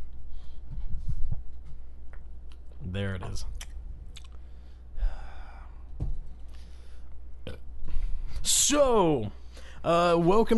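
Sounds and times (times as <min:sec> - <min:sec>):
low hum: 0:00.0 - 0:10.2
speech: 0:02.9 - 0:03.7, 0:08.5 - 0:10.5
person gulping an energy drink: 0:03.6 - 0:04.4.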